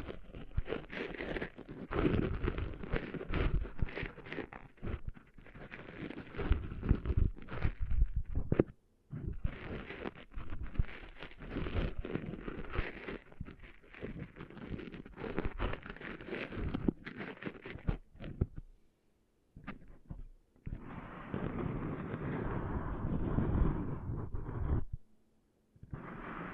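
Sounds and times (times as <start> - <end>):
rubbing and scraping of sand being cleaned out of ears: 0.0 - 18.6, 19.6 - 25.0, 25.8 - 26.5.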